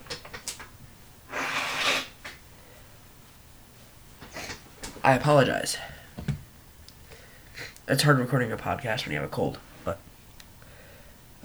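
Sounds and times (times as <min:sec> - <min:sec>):
faint sniffs: 0:01.3 - 0:02.3
person blowing nose: 0:01.3 - 0:02.4
speech: 0:05.0 - 0:06.0, 0:07.9 - 0:10.1.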